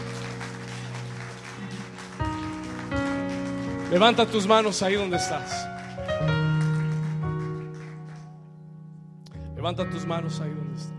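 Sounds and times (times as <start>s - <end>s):
loud audience applause: 0.0s - 8.5s
sustained keyboard chords: 0.0s - 10.9s
speech: 3.9s - 6.4s, 9.6s - 10.9s.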